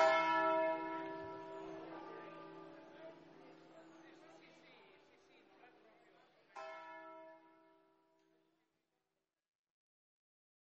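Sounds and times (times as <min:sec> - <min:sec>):
church bells in Azzano: 0:00.0 - 0:05.2, 0:06.5 - 0:08.3.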